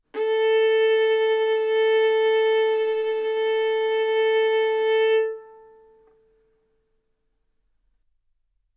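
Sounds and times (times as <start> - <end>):
violin arco on A string: 0.1 - 6.4.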